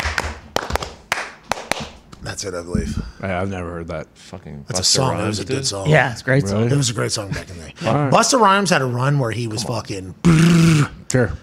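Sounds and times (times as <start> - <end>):
hands clapping a rhythm: 0.0 - 2.2
speech: 2.4 - 11.4.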